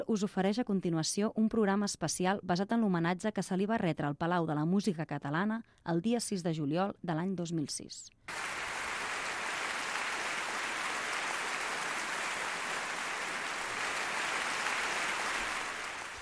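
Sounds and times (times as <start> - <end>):
speech: 0.0 - 8.6
concert hall audience applause at the Palau de la Música de Barcelona: 8.3 - 16.2.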